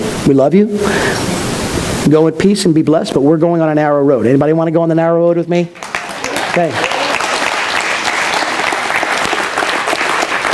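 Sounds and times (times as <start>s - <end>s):
speech: 0.3s - 1.4s, 2.1s - 5.8s, 6.6s - 6.9s
audience applauding: 5.8s - 10.5s.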